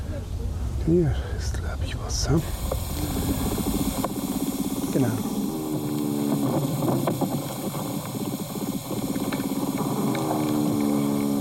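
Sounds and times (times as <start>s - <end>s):
speech: 0.8s - 3.5s, 5.0s - 5.3s
vibration sounds of a larger soil animal: 2.3s - 11.4s.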